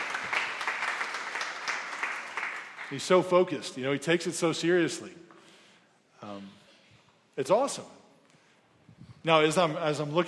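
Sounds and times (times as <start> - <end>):
applause: 0.0 - 3.4
speech: 2.9 - 5.2, 7.4 - 8.0, 9.2 - 10.2.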